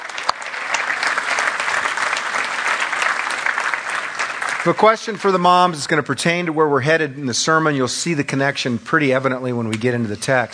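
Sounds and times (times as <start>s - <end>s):
audience applause: 0.0s - 6.0s
speech: 4.6s - 10.5s.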